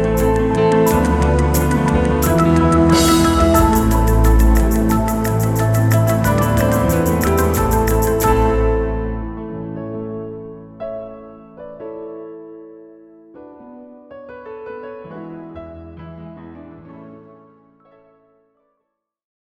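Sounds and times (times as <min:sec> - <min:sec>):
arpeggio: 0:00.0 - 0:09.5.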